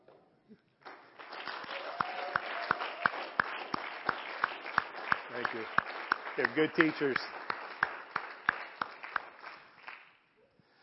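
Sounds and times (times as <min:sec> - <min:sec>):
church congregation clapping during a Wednesday night service: 0:00.8 - 0:10.3
speech: 0:05.5 - 0:05.8, 0:06.4 - 0:07.4.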